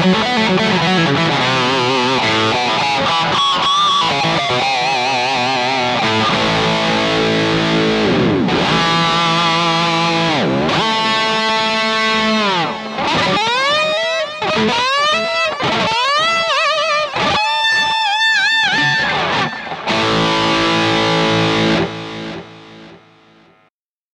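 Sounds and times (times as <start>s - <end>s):
guitar through russtone RG200F tremolo pedal: 0.0s - 23.7s.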